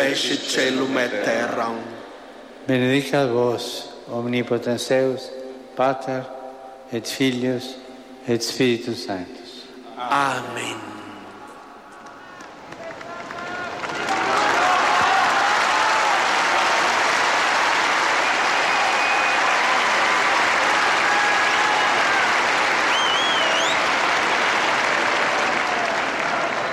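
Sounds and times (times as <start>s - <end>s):
speech: 0.0s - 9.4s, 10.0s - 10.9s
faint whistles and cheers: 12.4s - 26.7s
huge crowd's thunderous applause: 12.4s - 26.7s.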